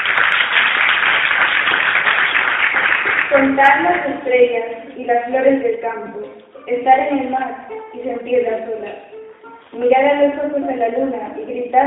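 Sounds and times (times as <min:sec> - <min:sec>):
audience applause: 0:00.0 - 0:03.4
speech: 0:03.3 - 0:09.1, 0:09.7 - 0:11.8.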